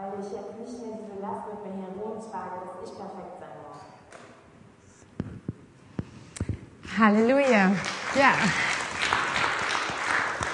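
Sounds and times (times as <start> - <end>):
speech: 0.2 - 3.9, 7.0 - 8.7
audience applause: 7.5 - 10.5.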